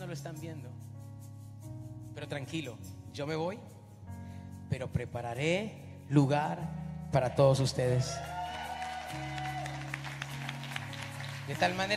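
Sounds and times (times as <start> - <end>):
speech: 0.1 - 0.9, 2.2 - 3.8, 4.7 - 8.4, 11.5 - 11.9
audience applause: 8.3 - 11.9.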